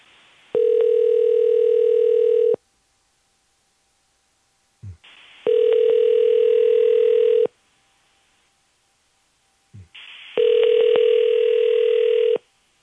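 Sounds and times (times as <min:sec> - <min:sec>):
telephone ringback tone on an unanswered dialled call: 0:00.6 - 0:02.6, 0:05.5 - 0:07.5, 0:10.4 - 0:12.4.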